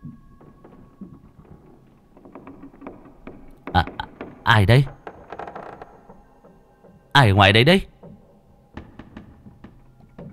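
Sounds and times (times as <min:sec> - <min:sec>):
woven bamboo door creaking and rattling as it is shaken: 0:00.0 - 0:07.3, 0:07.9 - 0:10.3
speech: 0:03.8 - 0:05.0, 0:07.2 - 0:07.9.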